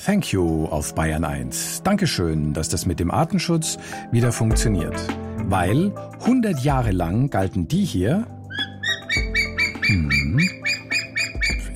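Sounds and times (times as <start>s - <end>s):
speech: 0.0s - 8.7s, 9.9s - 10.6s
white-tailed eagle calling: 8.5s - 11.7s.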